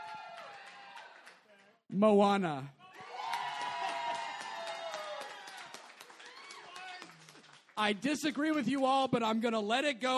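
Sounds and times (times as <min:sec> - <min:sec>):
audience clapping and cheering: 0:00.0 - 0:01.8, 0:02.9 - 0:09.1
speech: 0:01.9 - 0:02.8, 0:07.8 - 0:10.1.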